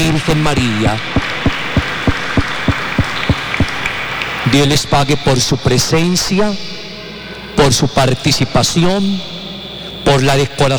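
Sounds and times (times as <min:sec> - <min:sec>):
audience applause: 0:00.0 - 0:04.5
speech: 0:00.1 - 0:01.4, 0:04.5 - 0:06.7, 0:07.6 - 0:09.3, 0:10.1 - 0:10.7.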